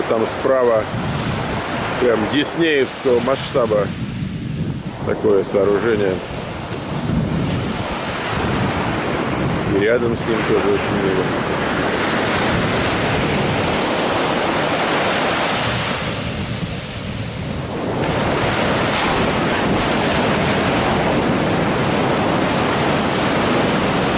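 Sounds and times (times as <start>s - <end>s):
sea surf waves breaking: 0.0s - 24.1s
speech: 0.1s - 1.1s, 2.0s - 4.1s, 5.0s - 6.3s, 9.7s - 11.7s.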